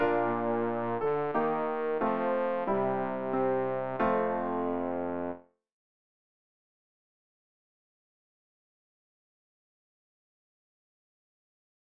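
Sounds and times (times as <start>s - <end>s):
bass for learning songs: 0.0s - 5.4s.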